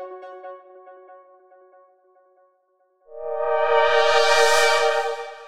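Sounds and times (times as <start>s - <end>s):
synth pads: 3.1s - 5.4s.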